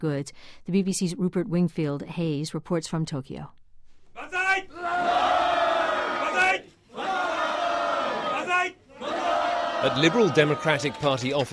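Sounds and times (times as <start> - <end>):
speech: 0.0 - 3.6, 9.8 - 11.5
crowd shouting banzai cheer at Liberal Democratic Party offices: 4.2 - 11.5.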